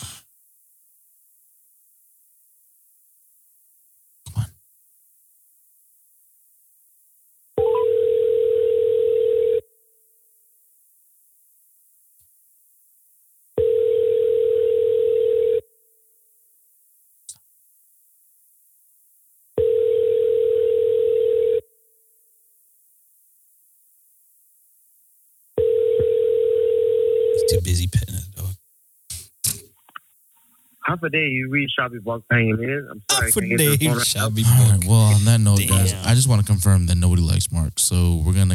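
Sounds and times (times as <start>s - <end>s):
phone ringback tone on an outgoing call: 7.6s - 9.6s, 13.6s - 15.6s, 19.6s - 21.6s, 25.6s - 27.6s
speech: 31.0s - 38.5s.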